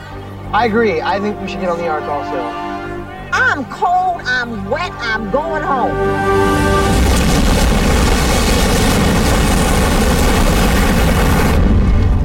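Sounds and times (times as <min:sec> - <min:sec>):
speech: 0:00.5 - 0:02.7, 0:03.3 - 0:06.8
flood water rushing: 0:05.9 - 0:11.7
dam breaking: 0:06.8 - 0:12.2.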